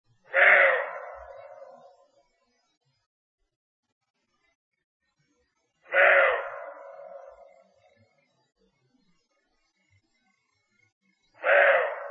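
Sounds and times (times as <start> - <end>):
roe deer barking: 0.3 - 1.9, 5.9 - 7.6, 11.4 - 12.0.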